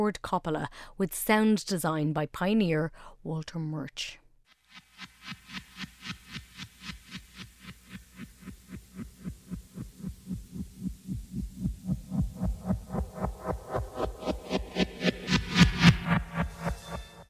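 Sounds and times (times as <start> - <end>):
speech: 0.0 - 4.2
film helicopter rotor sound effect: 4.7 - 17.2.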